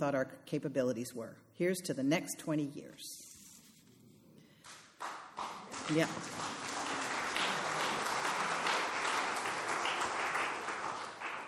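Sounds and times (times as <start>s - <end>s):
speech: 0.0s - 3.2s, 5.9s - 6.5s
crowd applauding: 5.0s - 11.4s.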